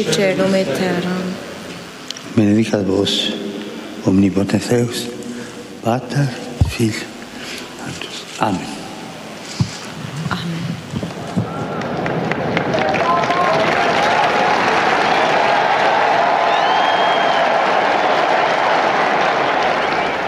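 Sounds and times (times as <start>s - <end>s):
speech: 0.0s - 1.4s, 2.4s - 5.2s, 5.8s - 7.1s, 8.4s - 8.8s
large crowd applauding and cheering: 10.9s - 20.2s.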